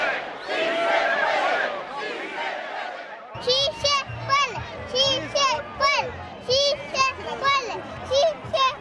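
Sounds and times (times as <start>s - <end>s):
protest crowd chanting: 0.0s - 8.7s
child chanting with an adult: 3.5s - 8.7s.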